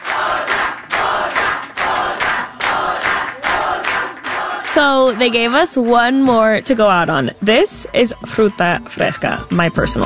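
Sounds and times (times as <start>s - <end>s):
crowd cheering wildly: 0.0s - 5.8s
speech: 4.8s - 10.0s.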